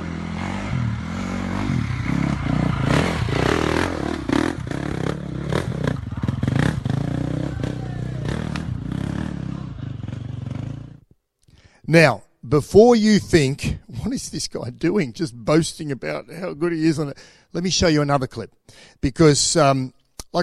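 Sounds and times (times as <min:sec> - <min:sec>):
dirt bike engine revving up steep tricky sections: 0:00.0 - 0:11.0
speech: 0:11.9 - 0:20.4.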